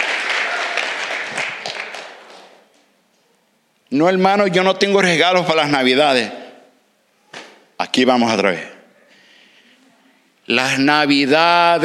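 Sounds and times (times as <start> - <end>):
audience applauding: 0.0 - 2.8
speech: 3.9 - 6.4, 8.0 - 8.7, 10.5 - 11.8.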